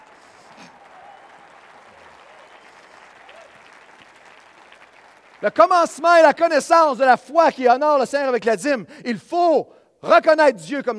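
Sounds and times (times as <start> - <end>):
audience applauding: 0.0 - 6.3
speech: 5.4 - 10.9.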